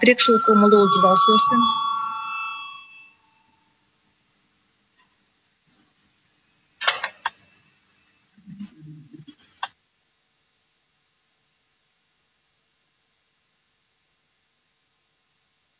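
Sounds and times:
speech: 0.0 - 1.9
parliament chamber bell before a vote: 0.0 - 3.5.

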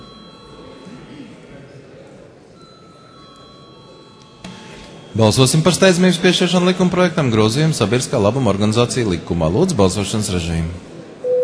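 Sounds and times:
parliament chamber bell ringing: 0.0 - 1.2, 2.6 - 6.6
speech: 5.2 - 11.0.

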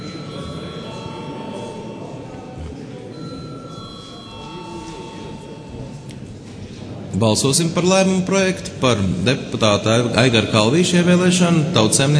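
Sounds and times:
parliament chamber bell ringing: 0.0 - 6.3
murmur of voices: 0.0 - 12.1
speech: 7.2 - 12.1.

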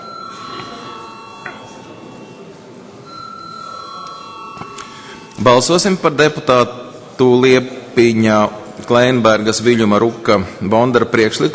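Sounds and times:
electronic session bell ringing in the Latvian parliament: 0.0 - 6.1
murmur of voices: 0.0 - 11.5
speech: 5.4 - 11.5.

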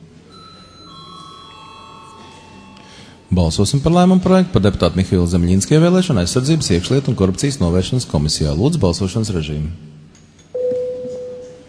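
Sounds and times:
quiet room noise in a parliament chamber: 0.0 - 11.6
electronic bell in a parliament chamber before a vote: 0.3 - 3.4, 10.5 - 11.6
speech: 3.3 - 10.0.

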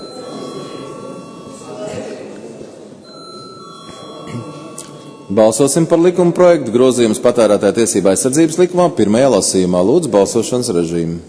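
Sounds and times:
parliament chamber bell ringing: 0.0 - 8.0
low murmur of voices: 0.0 - 11.2
speech: 5.3 - 11.2.

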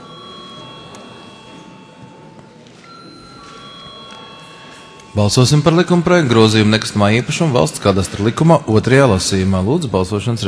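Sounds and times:
parliament chamber bell ringing calling for vote: 0.0 - 7.3
speech: 5.2 - 10.4.

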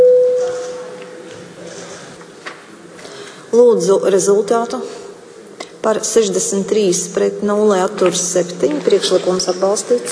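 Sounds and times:
parliament voting call bell tone: 0.0 - 1.1
murmur: 0.4 - 10.1
speech: 3.7 - 5.0, 5.8 - 10.1.

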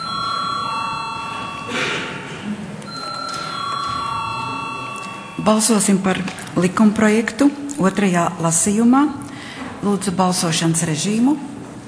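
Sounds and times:
parliament bell ringing before a vote: 0.0 - 6.7
speech: 5.4 - 11.5.

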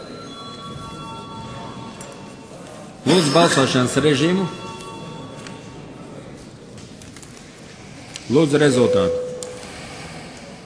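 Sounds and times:
parliament chamber bell ringing continuously: 0.0 - 6.4, 8.7 - 9.9
speech: 3.0 - 4.6, 8.3 - 9.2.

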